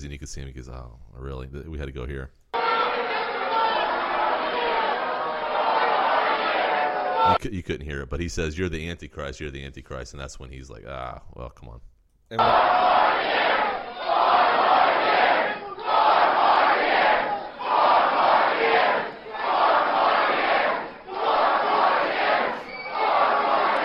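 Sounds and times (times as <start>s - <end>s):
speech: 0.0s - 2.4s, 7.2s - 13.4s
large crowd chanting in unison: 2.6s - 7.4s, 12.4s - 23.8s.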